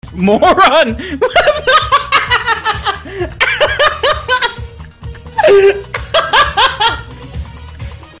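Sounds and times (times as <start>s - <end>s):
person laughing: 1.0s - 7.2s.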